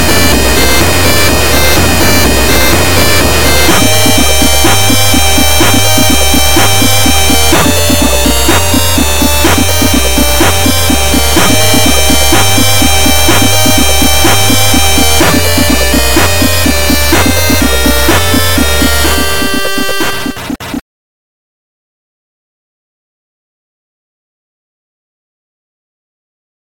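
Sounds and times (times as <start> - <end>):
chiptune sound: 0.0 - 20.8.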